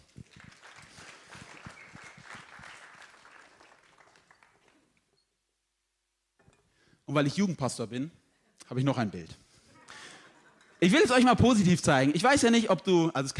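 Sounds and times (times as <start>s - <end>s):
crowd applauding: 0.0s - 5.0s
speech: 7.1s - 9.4s, 10.8s - 13.3s.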